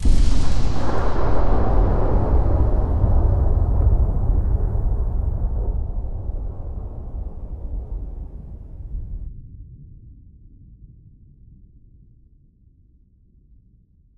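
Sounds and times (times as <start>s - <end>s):
vortex flash effect: 0.0s - 9.3s.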